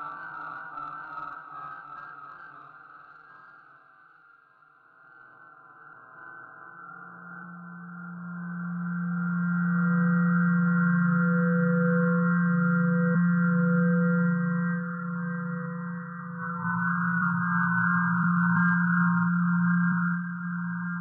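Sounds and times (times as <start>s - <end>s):
low processed sine tone hum: 4.9s - 21.0s
higher processed sine tones: 7.4s - 21.0s.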